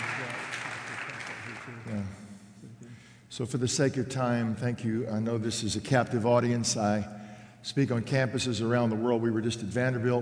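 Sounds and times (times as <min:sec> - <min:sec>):
audience hand clapping: 0:00.0 - 0:02.0
speech: 0:03.4 - 0:10.2.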